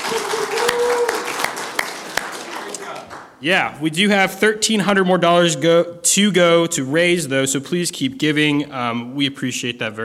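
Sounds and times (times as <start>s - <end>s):
audience clapping: 0.0s - 3.4s
speech: 3.4s - 10.0s.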